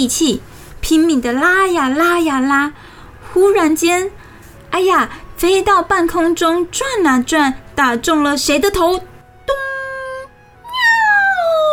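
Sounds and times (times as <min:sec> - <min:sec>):
speech: 0:00.0 - 0:09.6
cat crying out when hit: 0:10.6 - 0:11.7.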